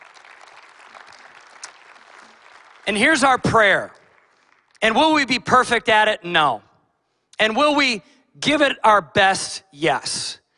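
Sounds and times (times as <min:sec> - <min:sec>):
applause: 0:00.0 - 0:05.3
speech: 0:02.9 - 0:04.0, 0:04.8 - 0:06.7, 0:07.4 - 0:10.4.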